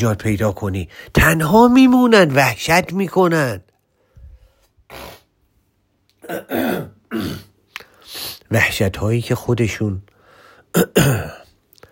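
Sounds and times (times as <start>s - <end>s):
speech: 0.0s - 3.7s, 4.9s - 5.2s, 6.3s - 7.5s, 8.1s - 10.1s
person with asthma and troubled lungs coughing: 6.2s - 7.6s, 10.7s - 11.6s.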